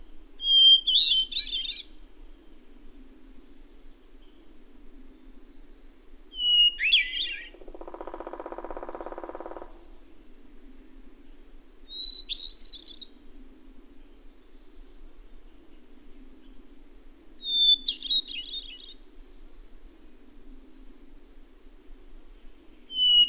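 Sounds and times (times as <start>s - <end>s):
bird song with high whistle and twittering warble: 0.0s - 2.7s, 3.4s - 10.4s, 11.2s - 13.2s, 14.0s - 16.7s, 17.4s - 20.1s, 22.3s - 23.2s.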